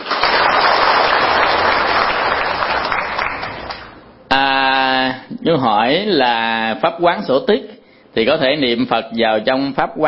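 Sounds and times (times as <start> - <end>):
audience applause: 0.0 - 4.0
speech: 5.5 - 10.0.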